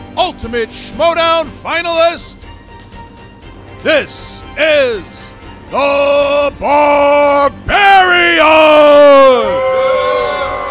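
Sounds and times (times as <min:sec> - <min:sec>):
speech: 0:00.2 - 0:02.5, 0:03.8 - 0:10.0
crowd booing: 0:08.3 - 0:10.7.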